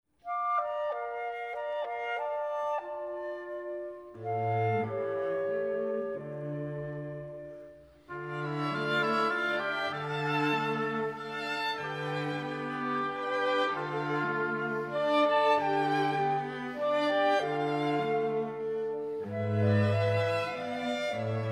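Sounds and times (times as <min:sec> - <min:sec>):
instrumental music: 0:00.2 - 0:21.5.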